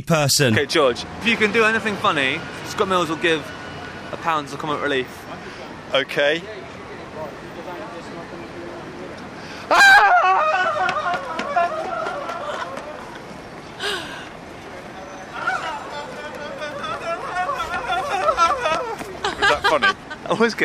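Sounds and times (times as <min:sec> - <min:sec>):
speech: 0:00.0 - 0:05.2, 0:05.9 - 0:06.6, 0:19.7 - 0:20.6
person screaming: 0:09.7 - 0:10.8
laughter: 0:09.7 - 0:14.4, 0:15.3 - 0:20.6
person running off and back: 0:10.8 - 0:13.7, 0:17.6 - 0:19.2.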